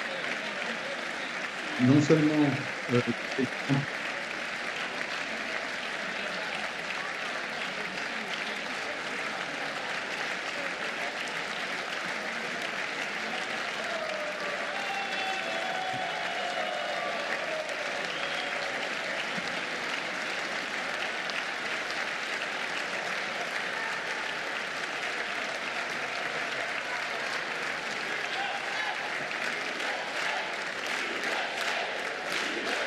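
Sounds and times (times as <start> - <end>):
large crowd applauding: 0.0 - 32.8
speech: 1.8 - 4.0
scattered cheers and whistles: 13.7 - 19.0.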